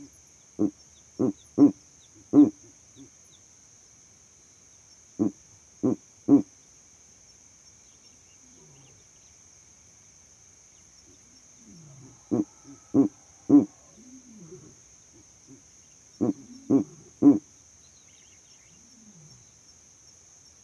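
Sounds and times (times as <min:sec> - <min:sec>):
owl hooting at night: 0:00.6 - 0:02.6, 0:05.2 - 0:06.5, 0:11.7 - 0:15.6, 0:16.2 - 0:17.4.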